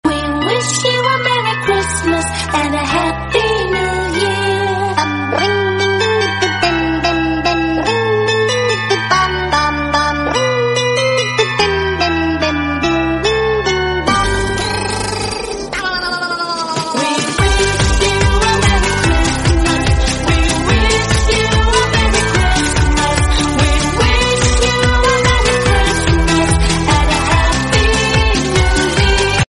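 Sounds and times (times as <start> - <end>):
English New Year song: 0.1 - 29.4.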